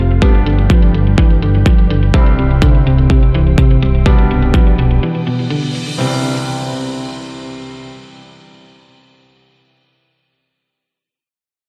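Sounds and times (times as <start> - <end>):
corporate news music: 0.0 - 9.0.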